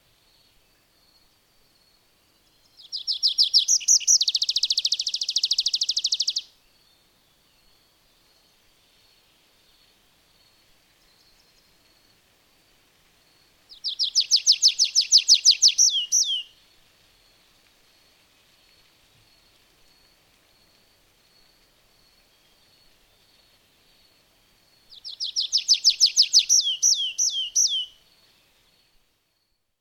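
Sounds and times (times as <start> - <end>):
faint hiss: 0.0 - 29.7
songbird trilling and whistling: 2.8 - 6.5, 13.7 - 16.5, 24.9 - 28.0.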